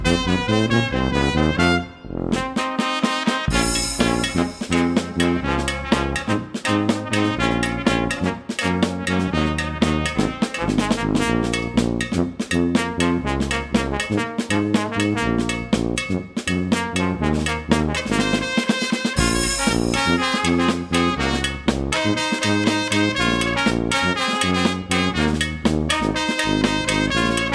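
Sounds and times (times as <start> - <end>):
brass band playing: 0.0 - 27.5.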